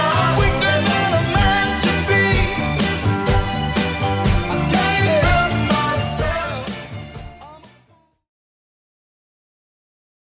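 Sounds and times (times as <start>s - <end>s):
60s Redrum drum machine beat: 0.0s - 7.8s.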